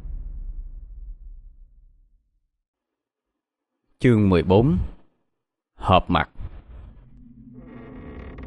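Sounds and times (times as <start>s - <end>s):
speech: 4.0s - 4.9s, 5.9s - 6.3s
wooden door creaking: 6.5s - 8.4s.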